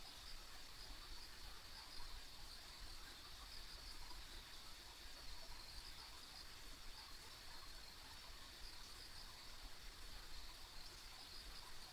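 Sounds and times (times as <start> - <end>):
background hiss: 0.0 - 11.9
insects trilling: 0.0 - 11.9.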